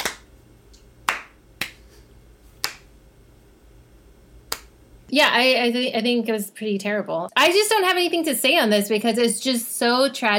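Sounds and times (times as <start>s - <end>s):
slow clapping: 0.0s - 1.9s, 2.6s - 2.9s, 4.5s - 4.7s
speech: 5.1s - 10.3s.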